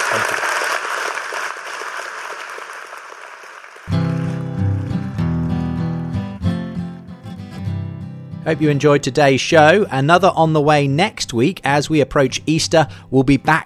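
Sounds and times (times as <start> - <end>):
round of applause: 0.0 - 6.2
speech: 0.1 - 0.6, 8.5 - 13.6.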